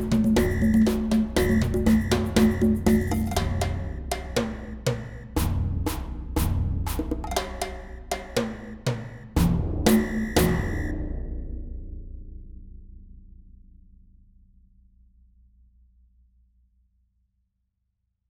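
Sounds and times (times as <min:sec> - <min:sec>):
samba music: 0:00.0 - 0:11.0.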